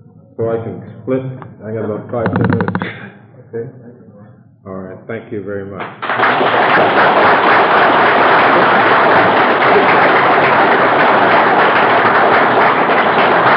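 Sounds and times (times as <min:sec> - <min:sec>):
speech: 0:00.4 - 0:04.0, 0:04.6 - 0:08.7
audience clapping: 0:05.8 - 0:13.5.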